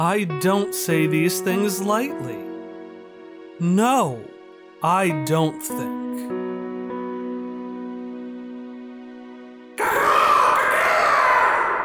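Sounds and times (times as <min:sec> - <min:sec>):
speech: 0:00.0 - 0:02.5, 0:03.6 - 0:06.3
deep echoing Tyrannosaurus roar through the cliffside: 0:09.8 - 0:11.8.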